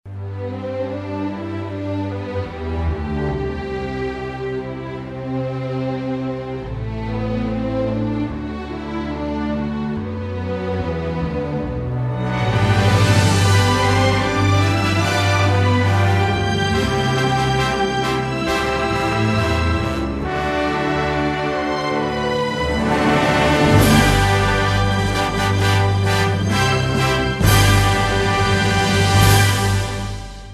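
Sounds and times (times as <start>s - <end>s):
documentary background music: 0.1s - 30.5s.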